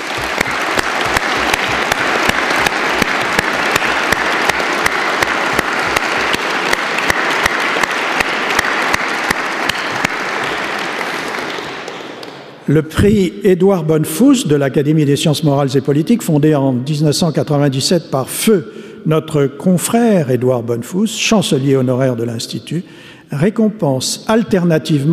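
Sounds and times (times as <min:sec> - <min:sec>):
audience applause: 0:00.0 - 0:12.6
speech: 0:12.7 - 0:25.1.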